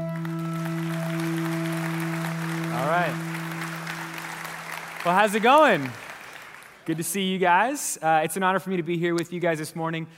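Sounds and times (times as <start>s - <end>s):
audience applause welcoming a speaker: 0.0s - 7.8s
speech: 5.0s - 6.0s, 6.9s - 10.1s.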